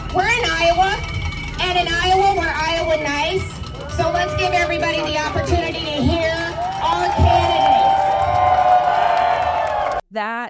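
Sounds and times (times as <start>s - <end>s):
bell ringing: 0.0s - 9.0s
whistling: 0.0s - 9.9s
speech: 0.1s - 6.2s, 10.1s - 10.4s
crowd heckling: 2.2s - 10.0s.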